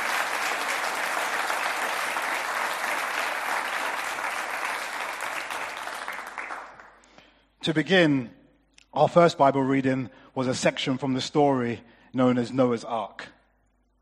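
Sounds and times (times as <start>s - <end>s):
crowd applause: 0.0s - 7.0s
speech: 7.6s - 8.4s, 9.0s - 13.4s.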